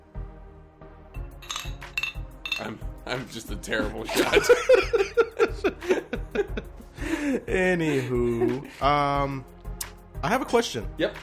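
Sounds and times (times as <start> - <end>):
glass clinking as whiskey is poured: 1.3 - 2.8
speech: 2.6 - 6.0, 7.5 - 9.5, 10.2 - 11.2
laughter: 3.9 - 9.0.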